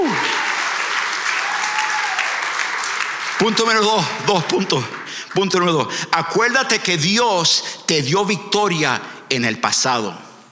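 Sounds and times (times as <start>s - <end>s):
audience applauding: 0.0s - 6.6s
speech: 3.4s - 10.3s.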